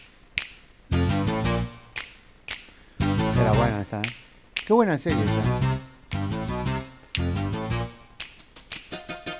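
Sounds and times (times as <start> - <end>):
finger snapping in a TV series theme: 0.3 - 0.7, 1.9 - 2.8, 4.0 - 4.7, 7.1 - 7.4, 8.2 - 8.9
low resonant bass notes: 0.9 - 1.9, 3.0 - 4.0, 5.1 - 8.0
speech: 3.5 - 5.7.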